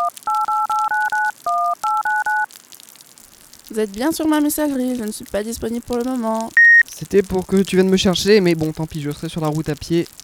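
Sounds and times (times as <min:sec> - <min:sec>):
phone number dialed with touch-tone beeps: 0:00.0 - 0:02.5, 0:06.6 - 0:06.9
faint hiss: 0:00.0 - 0:10.2
speech: 0:03.8 - 0:10.1.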